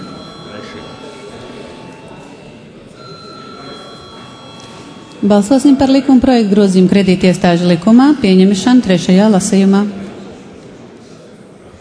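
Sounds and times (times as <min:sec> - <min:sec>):
parliamentary voting bell ringing: 0:00.0 - 0:06.5
murmur of voices: 0:00.0 - 0:11.7
speech: 0:05.2 - 0:10.0.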